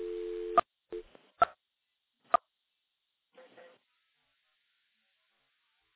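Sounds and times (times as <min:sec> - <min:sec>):
telephone dial tone from an electromechanical switch: 0:00.0 - 0:00.6
faint noise: 0:00.0 - 0:05.9.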